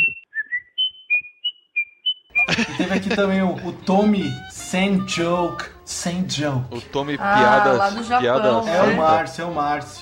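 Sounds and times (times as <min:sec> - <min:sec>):
person whistling: 0:00.0 - 0:02.6
laughter: 0:02.4 - 0:04.0
speech: 0:02.6 - 0:10.0.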